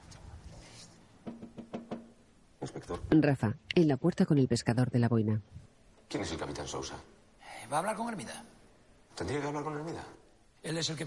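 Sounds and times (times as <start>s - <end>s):
hand striking a wooden shop counter: 1.2s - 2.2s
speech: 2.8s - 7.1s, 7.7s - 8.5s, 9.2s - 11.0s.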